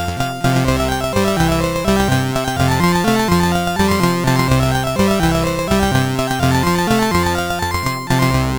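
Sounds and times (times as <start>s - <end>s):
MOS6581R4 SID sound chip synthesizer: 0.1s - 8.5s.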